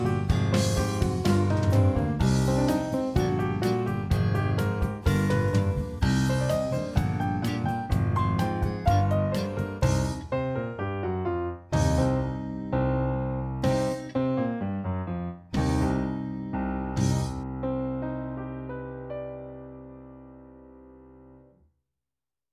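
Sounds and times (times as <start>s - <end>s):
persistent piano accompaniment: 0.0s - 21.5s.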